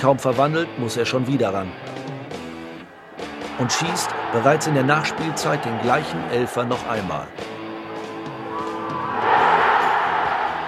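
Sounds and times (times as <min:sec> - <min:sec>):
speech: 0:00.0 - 0:02.0, 0:03.6 - 0:07.5
huge stadium crowd cheering: 0:02.8 - 0:10.6.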